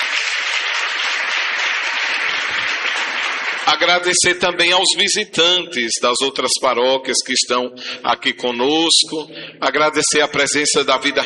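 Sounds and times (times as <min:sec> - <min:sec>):
warm round of applause: 0:00.0 - 0:04.3
speech: 0:03.7 - 0:11.2.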